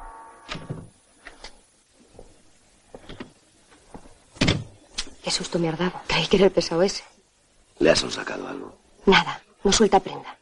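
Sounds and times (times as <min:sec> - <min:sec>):
door opening with a low tonal creak: 0:00.0 - 0:00.9
door thump: 0:00.5 - 0:00.9, 0:04.4 - 0:04.8
speech: 0:05.3 - 0:07.1, 0:07.8 - 0:10.4.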